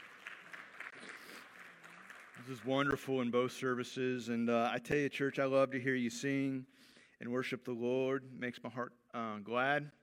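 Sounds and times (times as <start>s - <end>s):
audience applause: 0.0s - 3.1s
speech: 2.4s - 10.0s.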